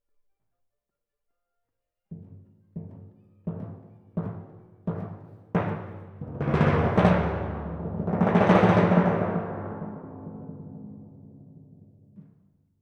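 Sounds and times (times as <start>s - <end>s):
timpani in F: 2.2s - 12.4s.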